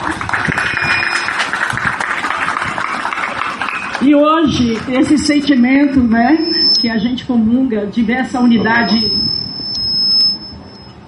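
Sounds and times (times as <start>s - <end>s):
applause: 0.0s - 4.9s
speech: 4.1s - 9.4s.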